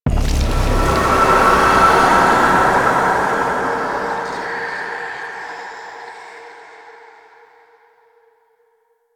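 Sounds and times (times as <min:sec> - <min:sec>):
hex appear effect: 0:00.1 - 0:06.0.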